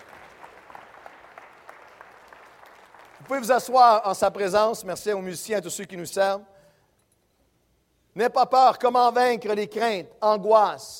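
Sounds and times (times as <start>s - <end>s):
congregation clapping during a church service: 0.0s - 4.7s
speech: 3.2s - 6.5s, 8.2s - 10.9s.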